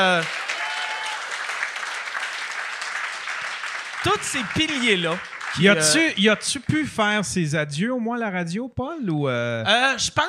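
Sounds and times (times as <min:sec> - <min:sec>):
speech: 0:00.0 - 0:00.4, 0:04.0 - 0:10.2
applause: 0:00.0 - 0:06.8.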